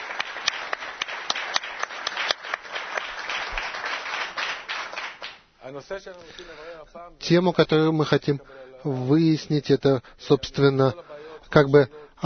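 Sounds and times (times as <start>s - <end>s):
small crowd applauding a group: 0.0s - 5.5s
speech: 5.7s - 12.2s.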